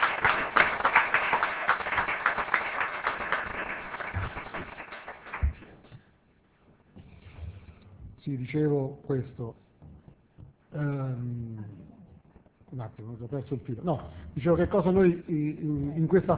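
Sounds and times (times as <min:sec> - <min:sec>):
audience applause: 0:00.0 - 0:05.7
speech: 0:08.4 - 0:09.6, 0:13.0 - 0:16.3.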